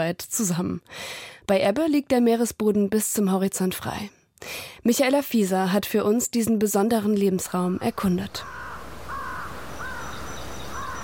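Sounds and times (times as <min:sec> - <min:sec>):
speech: 0:00.0 - 0:08.6
crows cawing over tidal mudflats at low tide on the Bay of Fundy: 0:08.4 - 0:11.0.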